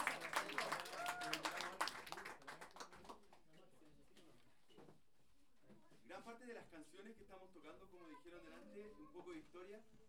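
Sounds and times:
audience applauding: 0.0s - 3.2s
speech: 6.4s - 10.0s.

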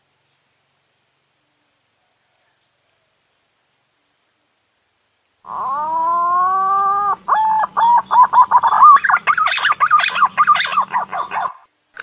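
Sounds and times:
green pigeon whistling song: 5.7s - 11.6s.

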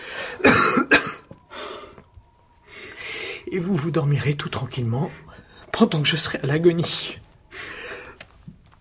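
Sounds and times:
choking cough: 0.4s - 1.2s
speech: 3.5s - 7.3s.

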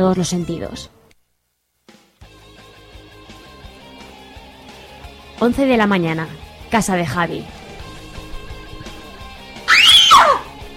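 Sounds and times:
speech: 0.0s - 1.0s, 5.4s - 7.6s
woman screaming: 9.7s - 10.6s.

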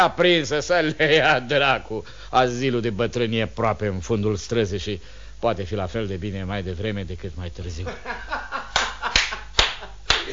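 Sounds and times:
speech: 0.0s - 8.7s
low steady hum: 0.0s - 10.3s
laughter: 7.8s - 10.3s
single person clapping slowly: 8.7s - 10.3s.

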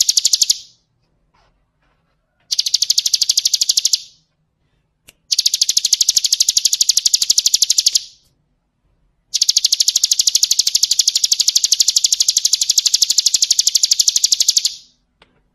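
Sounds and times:
bird singing rapid high trills: 0.0s - 0.8s, 2.5s - 4.2s, 5.3s - 8.2s, 9.4s - 14.9s.

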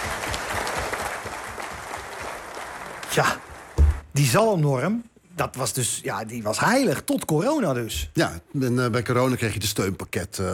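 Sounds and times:
audience applause: 0.0s - 4.0s
speech: 3.2s - 3.4s, 4.2s - 10.5s.

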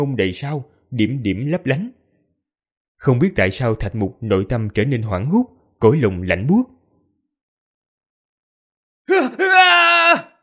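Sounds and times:
speech: 0.0s - 2.0s, 3.0s - 6.8s, 9.1s - 10.3s
man screaming as he wakes: 9.1s - 10.4s.

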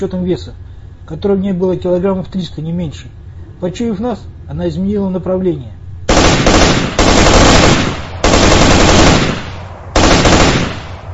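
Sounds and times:
speech: 0.0s - 5.8s
automatic rifle gunfire: 6.1s - 11.1s.

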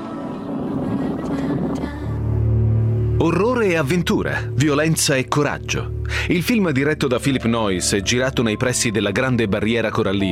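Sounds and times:
boat approaching on the water: 0.0s - 7.5s
speech: 3.2s - 10.3s.

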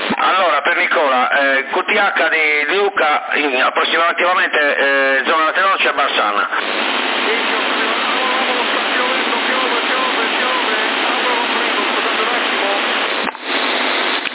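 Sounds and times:
speech: 0.2s - 7.8s
rain falling: 6.6s - 14.3s.

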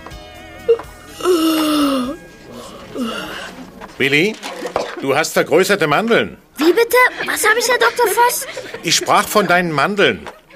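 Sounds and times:
person yawning: 1.1s - 3.6s
speech: 4.0s - 10.4s
laughter: 7.0s - 10.5s.

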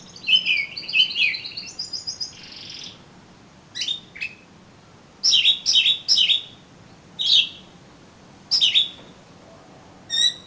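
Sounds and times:
Oriental magpie-robin song: 0.0s - 3.0s, 3.7s - 4.5s, 5.2s - 6.6s, 7.2s - 7.7s, 8.5s - 9.1s, 10.1s - 10.4s.

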